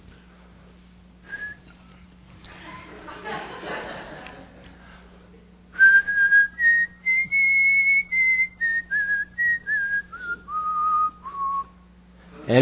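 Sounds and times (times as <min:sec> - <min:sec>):
laughter: 0:02.5 - 0:05.0
whistled presidential anthem melody: 0:05.8 - 0:11.8.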